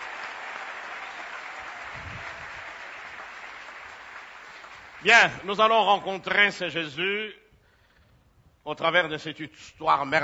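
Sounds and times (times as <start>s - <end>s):
congregation at a Christian worship service applauding and cheering: 0.0s - 6.0s
speech: 5.0s - 7.4s, 8.7s - 10.2s.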